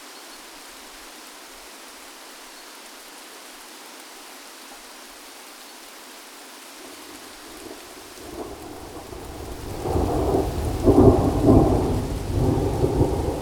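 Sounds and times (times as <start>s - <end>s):
water: 0.0s - 13.4s
thunderstorm: 7.2s - 13.4s.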